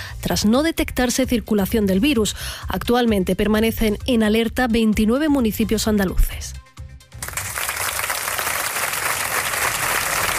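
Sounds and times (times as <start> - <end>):
speech: 0.2 - 6.6
large crowd applause ending a minute of silence: 7.2 - 10.3.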